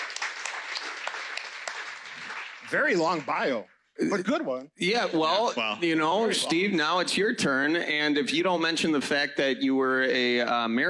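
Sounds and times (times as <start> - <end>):
audience applause for a man being introduced: 0.0 - 3.6
speech: 2.7 - 10.8.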